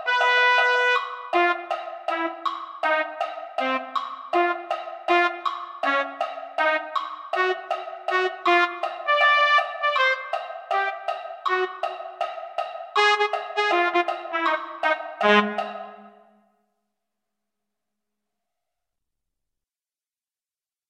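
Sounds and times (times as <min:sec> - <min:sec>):
trumpet: 0:00.0 - 0:12.0, 0:13.0 - 0:16.3.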